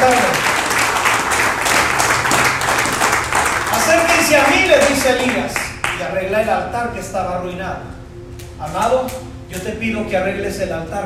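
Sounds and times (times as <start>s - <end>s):
audience applause: 0.0s - 6.0s
speech: 5.0s - 8.0s, 8.6s - 11.0s.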